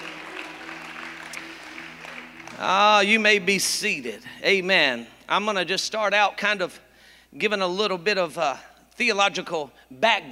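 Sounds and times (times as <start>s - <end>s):
audience hand clapping: 0.0s - 4.0s
speech: 2.6s - 10.3s.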